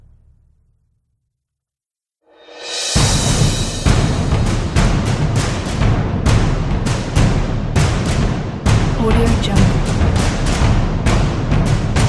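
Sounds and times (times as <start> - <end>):
drums: 2.4 - 12.0.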